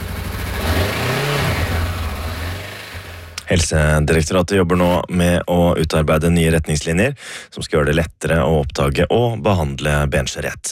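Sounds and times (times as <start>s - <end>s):
motorcycle engine revving: 0.0s - 3.4s
speech: 3.5s - 10.6s.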